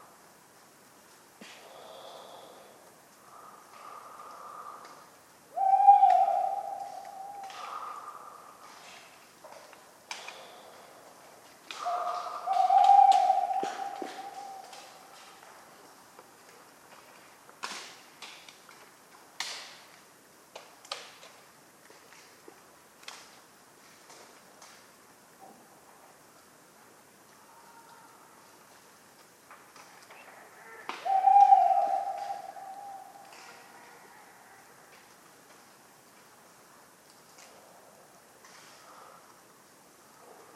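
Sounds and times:
Tawny owl hooting: 0:05.5 - 0:08.7, 0:11.7 - 0:15.4, 0:30.6 - 0:34.6.

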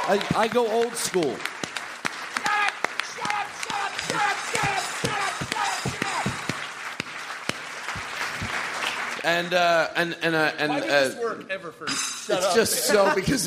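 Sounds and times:
audience applause at a comedy show: 0:00.0 - 0:09.6
speech: 0:00.1 - 0:01.6, 0:09.2 - 0:13.4.

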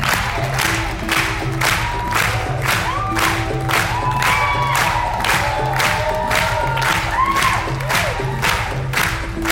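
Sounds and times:
film festival audience clapping in rhythm for a dancer: 0:00.0 - 0:09.5
film festival audience shouts and whoops: 0:01.8 - 0:08.8.

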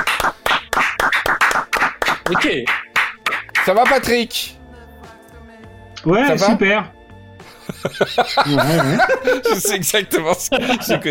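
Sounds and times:
brisk steady hand clapping: 0:00.0 - 0:04.2
speech: 0:02.3 - 0:02.8, 0:03.6 - 0:04.6, 0:06.0 - 0:07.0, 0:07.8 - 0:11.0
laughter: 0:07.4 - 0:11.0.

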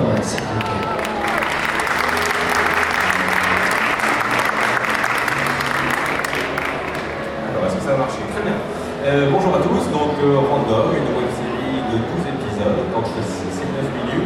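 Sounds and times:
audience applause: 0:00.0 - 0:07.3
faint murmur of voices: 0:07.0 - 0:14.2.

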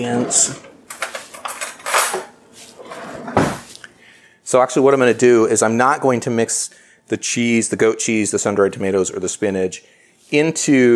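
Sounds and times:
speech: 0:00.0 - 0:00.7, 0:04.5 - 0:10.9
metal cutlery clinking as a fork is picked up: 0:00.3 - 0:02.3.

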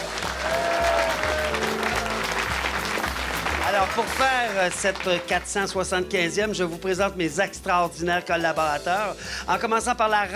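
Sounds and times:
audience applause: 0:00.0 - 0:05.5
speech: 0:03.8 - 0:10.3.

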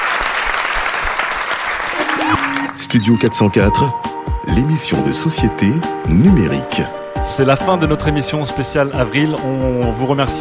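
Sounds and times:
studio audience applause: 0:00.0 - 0:03.2
speech: 0:02.8 - 0:10.4.

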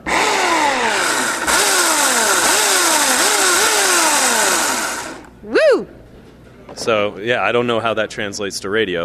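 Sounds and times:
electric chainsaw carving ice sculpture: 0:00.0 - 0:05.3
speech: 0:06.8 - 0:09.0.

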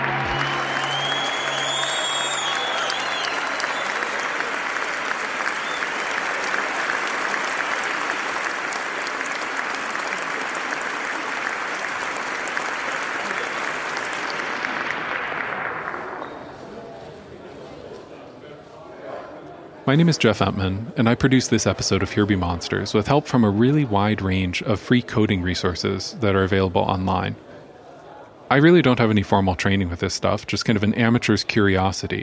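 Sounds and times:
audience applause: 0:00.0 - 0:17.4
speech: 0:19.9 - 0:27.5, 0:28.5 - 0:32.2.

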